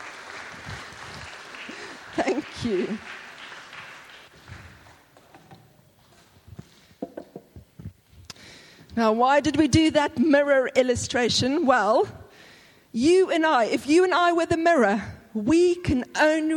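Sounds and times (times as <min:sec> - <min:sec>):
audience applause: 0:00.0 - 0:05.2
speech: 0:02.2 - 0:03.2, 0:09.0 - 0:12.2, 0:12.9 - 0:16.5.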